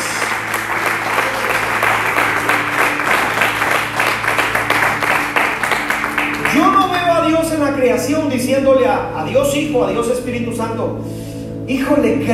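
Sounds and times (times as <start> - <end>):
audience applauding: 0.0 - 6.8
speech: 7.7 - 12.3.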